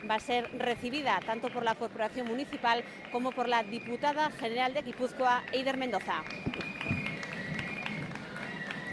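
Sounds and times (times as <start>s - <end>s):
speech: 0.0s - 6.7s
crowd applauding a performing company: 6.2s - 8.9s.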